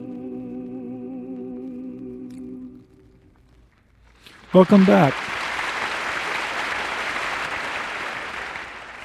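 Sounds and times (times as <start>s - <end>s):
audience applause: 4.2s - 9.0s
speech: 4.5s - 5.3s.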